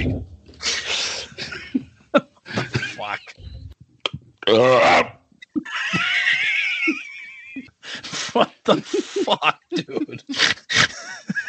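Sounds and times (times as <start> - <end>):
short throaty sounds: 0.0 - 1.6, 3.3 - 5.7
laughter: 0.6 - 3.5, 5.6 - 11.4
loud raspy burp: 4.4 - 5.8
speech: 4.5 - 5.1.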